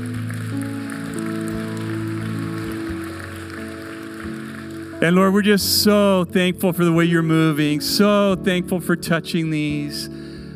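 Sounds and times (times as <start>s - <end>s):
applause: 0.0s - 6.8s
speech: 5.0s - 10.3s.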